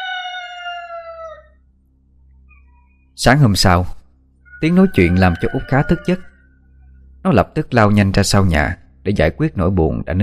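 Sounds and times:
rooster crowing outside: 0:00.0 - 0:01.6, 0:04.5 - 0:07.0
speech: 0:03.2 - 0:04.0, 0:04.6 - 0:06.3, 0:07.2 - 0:10.2.

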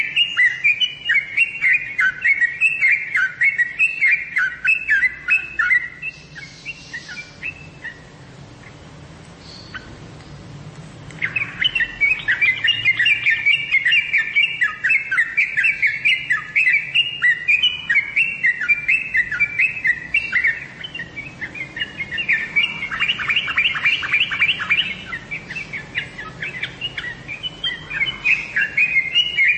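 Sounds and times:
birds chirping and twittering: 0:00.0 - 0:29.5.

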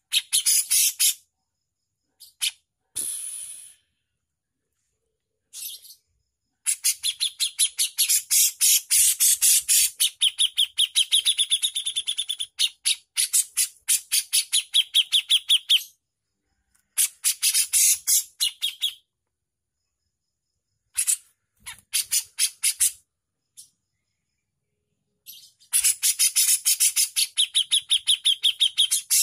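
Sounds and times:
Javan bush lark song with high sharp chirps and buzzy bursts: 0:00.0 - 0:01.4, 0:05.5 - 0:16.1, 0:16.8 - 0:19.2, 0:19.8 - 0:29.2.

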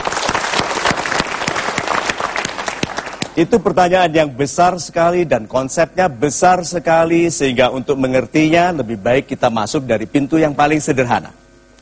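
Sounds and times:
audience applause: 0:00.0 - 0:03.4
speech: 0:03.4 - 0:11.4.

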